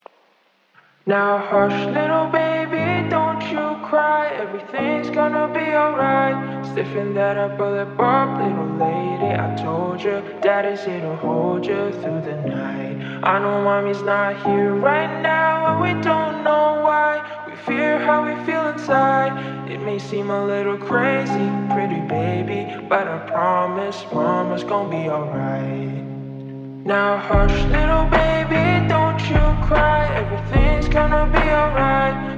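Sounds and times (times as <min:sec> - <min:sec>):
slowed music with reverb: 0:01.2 - 0:32.3.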